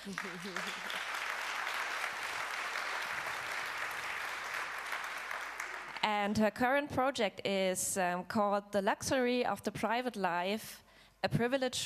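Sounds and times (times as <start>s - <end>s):
speech: 0.0s - 1.2s, 6.0s - 11.8s
audience applause: 0.0s - 6.0s.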